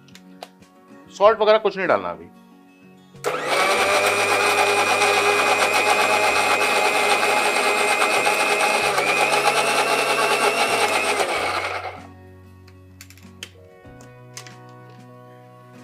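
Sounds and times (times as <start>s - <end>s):
speech: 1.1s - 2.4s
electric grinder grinding curry paste: 3.2s - 12.1s.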